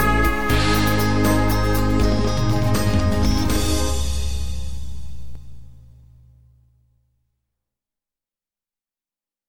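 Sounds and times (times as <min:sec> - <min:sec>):
trumpet melody: 0:00.0 - 0:05.6.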